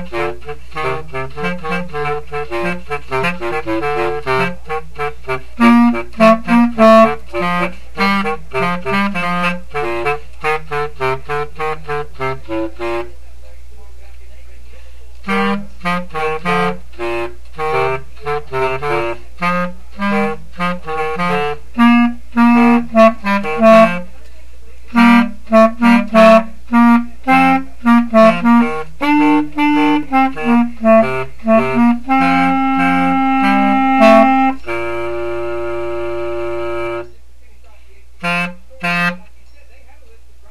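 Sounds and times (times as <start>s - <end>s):
bass clarinet: 0.0s - 13.2s, 15.2s - 24.2s, 24.9s - 37.1s, 38.2s - 39.2s.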